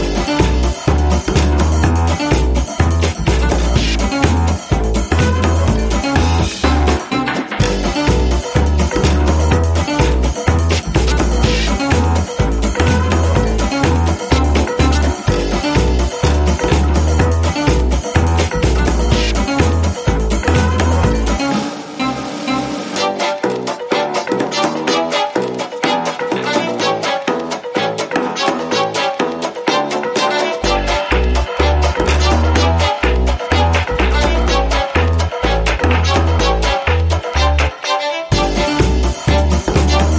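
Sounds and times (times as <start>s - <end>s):
instrumental music mix without vocals or glockenspiel: 0.0s - 40.1s.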